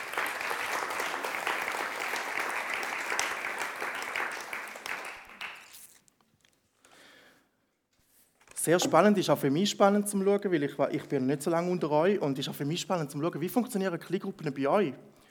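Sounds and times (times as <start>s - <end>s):
applause: 0.0s - 5.9s
speech: 8.6s - 15.2s.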